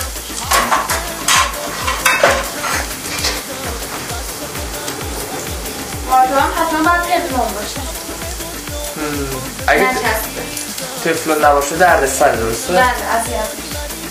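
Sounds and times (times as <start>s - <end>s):
food frying in hot oil in a pan over gentle heat: 0.0s - 14.0s
utensil scraping and clinking against the pan: 0.4s - 5.9s
speech: 9.1s - 13.6s.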